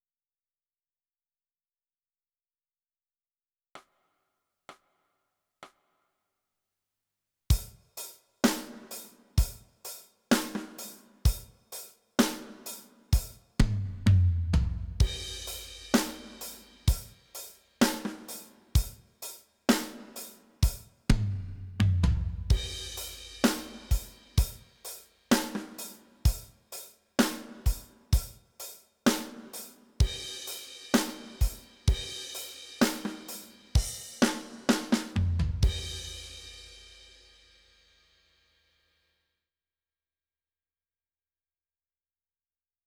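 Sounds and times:
drums: 0:07.5 - 0:38.2.

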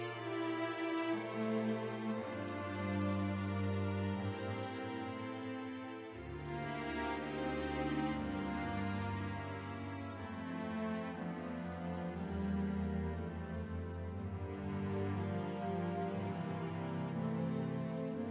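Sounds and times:
full orchestra: 0:00.0 - 0:18.2.

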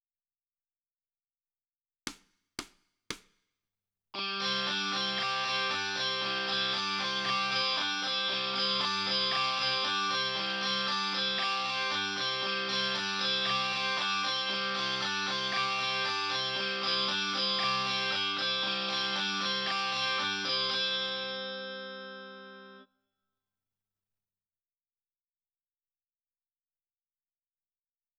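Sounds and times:
guitar: 0:04.2 - 0:22.9.

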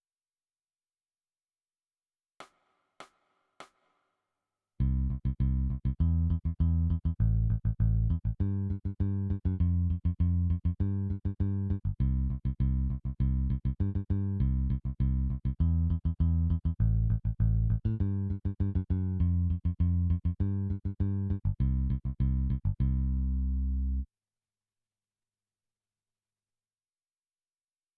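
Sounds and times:
bass: 0:04.8 - 0:24.1.

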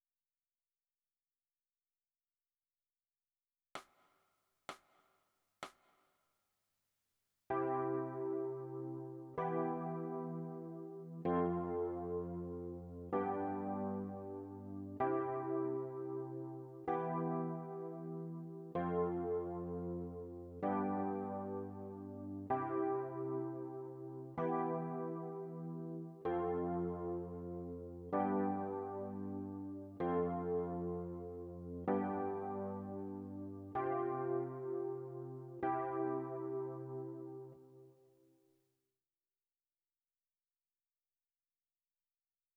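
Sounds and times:
electric piano: 0:07.5 - 0:37.9.

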